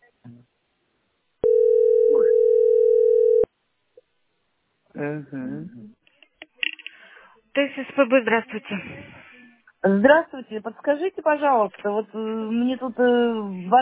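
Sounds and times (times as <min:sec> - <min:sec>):
telephone dial tone before dialling an extension number: 0:01.4 - 0:03.5
speech: 0:07.6 - 0:09.2, 0:09.8 - 0:13.8.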